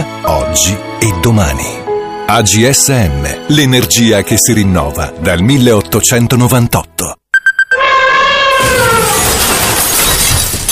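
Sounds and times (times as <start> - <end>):
speech: 0.6 - 7.2
elephant-like trumpet: 7.8 - 9.2
china and glass shattering: 9.0 - 10.6.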